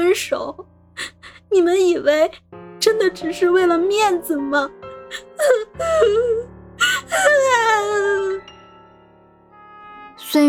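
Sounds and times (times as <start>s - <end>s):
speech: 0.2s - 8.5s
woman crying in a drama scene: 0.5s - 1.8s, 5.1s - 8.4s.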